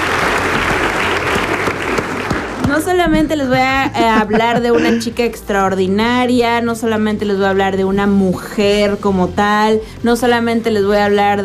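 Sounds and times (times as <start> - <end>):
crowd applauding: 0.0 - 5.0
speech: 2.8 - 11.4.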